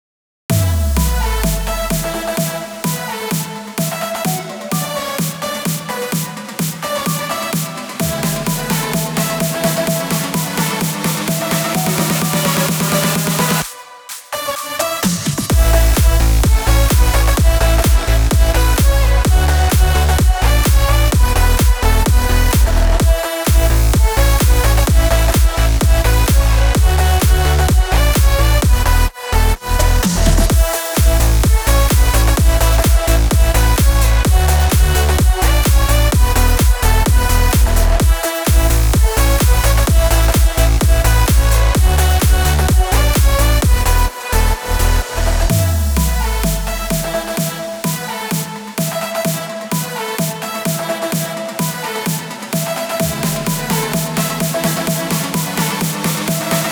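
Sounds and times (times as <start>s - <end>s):
electronic house techno music: 0.5s - 56.7s.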